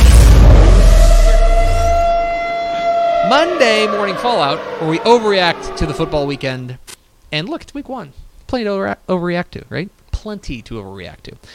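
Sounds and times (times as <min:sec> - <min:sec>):
air raid siren sound effect: 0:00.0 - 0:06.6
speech: 0:03.3 - 0:11.5.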